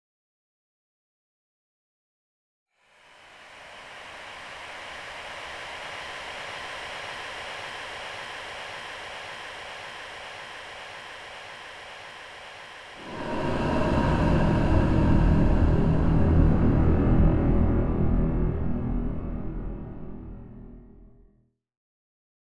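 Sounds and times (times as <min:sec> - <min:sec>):
sweeping: 0:03.4 - 0:20.6.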